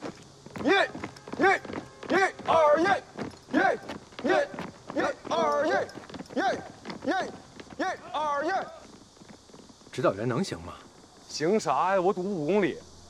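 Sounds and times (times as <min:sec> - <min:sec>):
soldiers running footsteps on a 20 km cross-country run: 0:00.0 - 0:12.9
shouted voices: 0:00.6 - 0:08.9.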